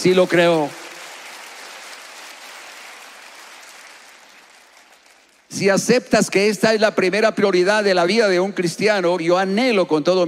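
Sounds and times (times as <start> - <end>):
speech: 0.0 - 0.8, 5.5 - 10.2
audience applause: 0.0 - 5.6.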